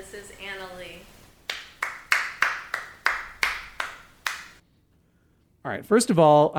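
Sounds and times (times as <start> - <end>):
hand clapping: 1.5 - 4.6
speech: 5.6 - 6.5.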